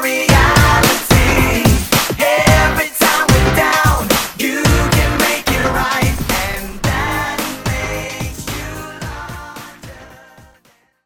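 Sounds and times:
110 BPM drum beat: 0:00.3 - 0:08.8.

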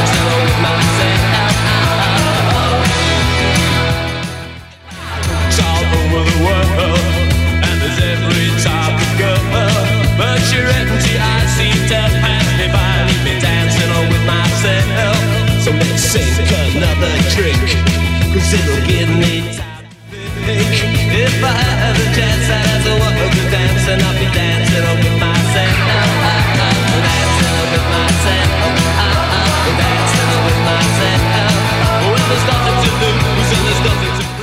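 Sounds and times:
1980s drum machine beat: 0:00.0 - 0:34.4.

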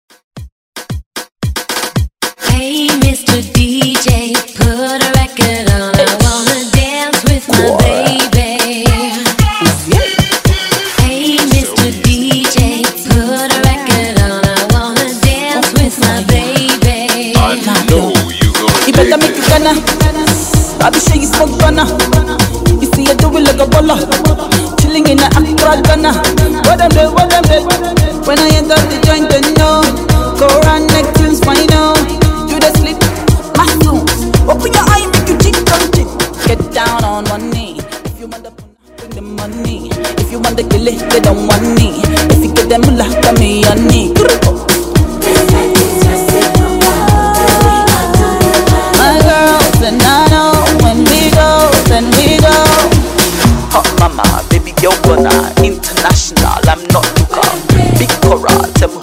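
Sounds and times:
Afro moombah hype intro music: 0:00.8 - 0:59.0.

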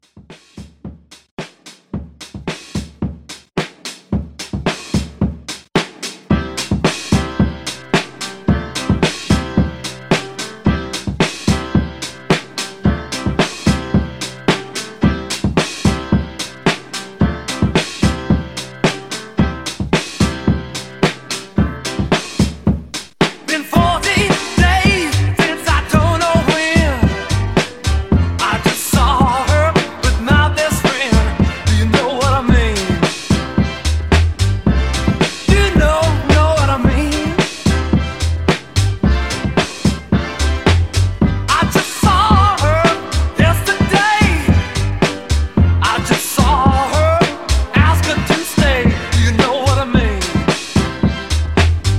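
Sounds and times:
1970s rock drum beat: 0:00.0 - 0:51.9.

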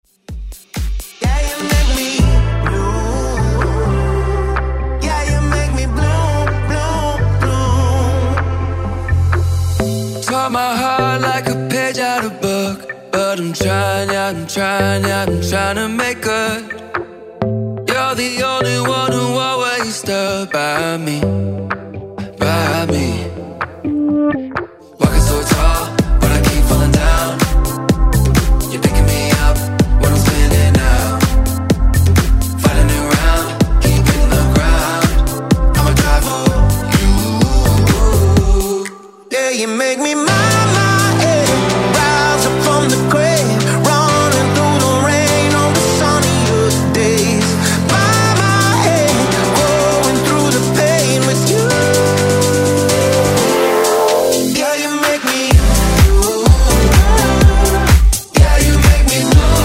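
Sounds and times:
Top40 pop music: 0:00.1 - 0:59.6.

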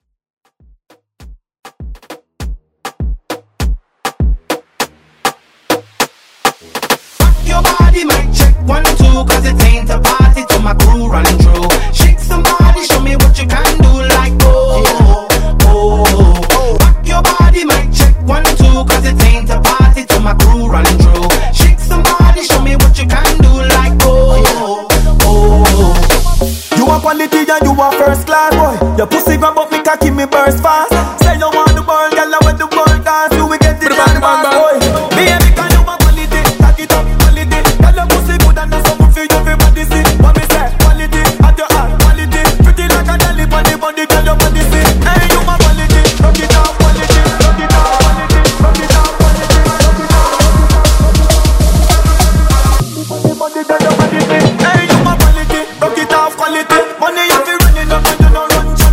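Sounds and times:
moombahton DJ mix: 0:01.7 - 0:58.9.

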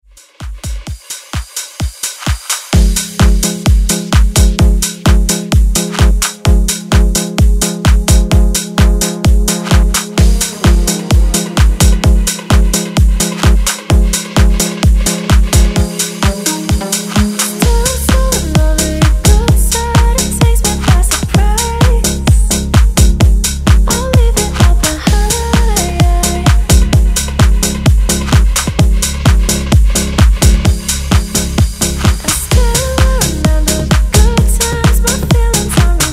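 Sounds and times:
dance music: 0:00.0 - 0:36.1.

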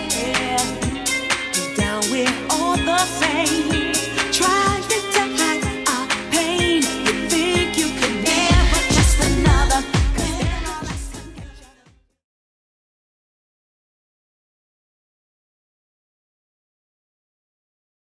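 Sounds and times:
90s style drum beat: 0:00.0 - 0:11.8.

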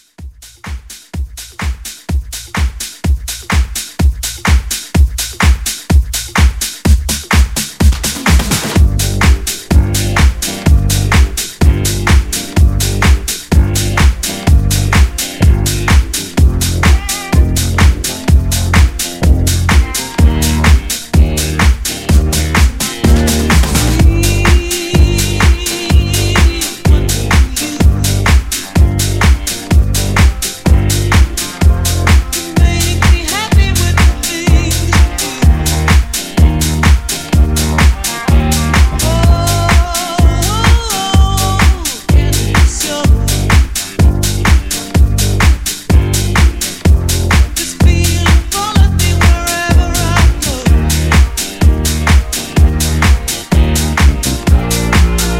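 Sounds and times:
70s rock house drums: 0:00.0 - 0:55.3.

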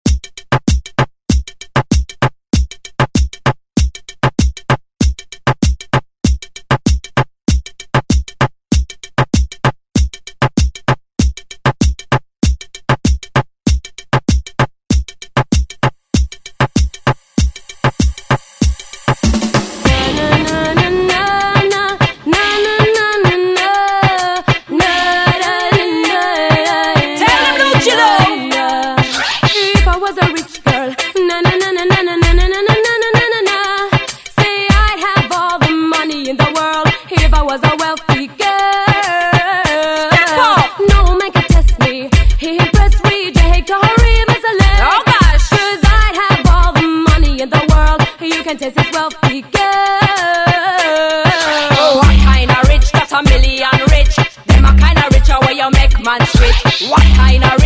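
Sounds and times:
90s drum beat: 0:00.0 - 0:57.6.

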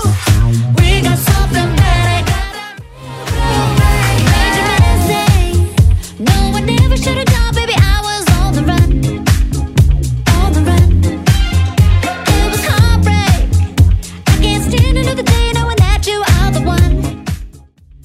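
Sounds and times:
Redrum drum machine beat: 0:00.0 - 0:18.0.

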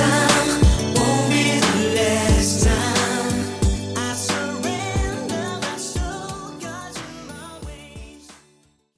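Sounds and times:
extended drum loop at 90 BPM: 0:00.0 - 0:06.4.

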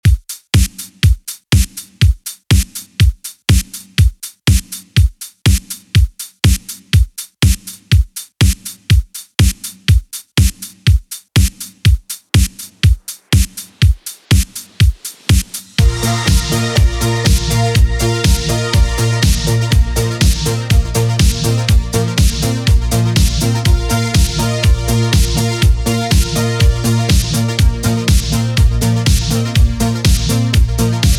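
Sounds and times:
clean 80s drum beat at 122 bpm: 0:00.0 - 0:31.1.

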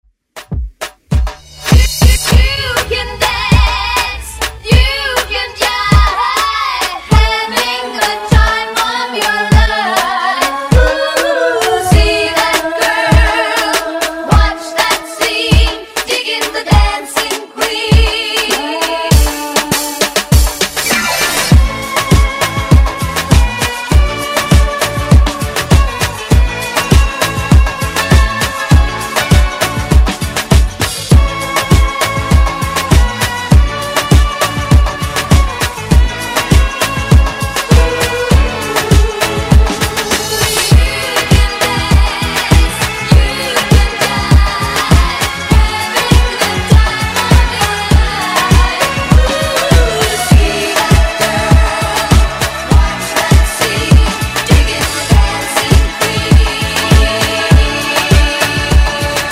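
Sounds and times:
afro epic intro music: 0:00.3 - 0:59.3.

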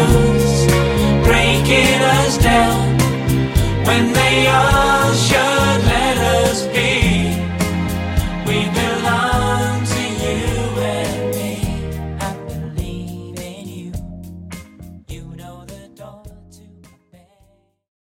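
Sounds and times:
classic ReDrum drum machine beat: 0:00.0 - 0:14.4.

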